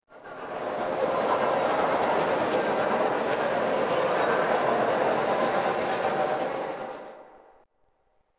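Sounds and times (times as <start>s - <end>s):
city crowd: 0.1s - 7.6s.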